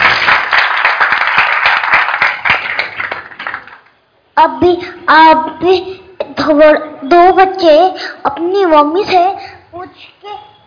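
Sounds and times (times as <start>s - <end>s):
group clapping: 0.0s - 4.0s
speech: 4.4s - 10.1s.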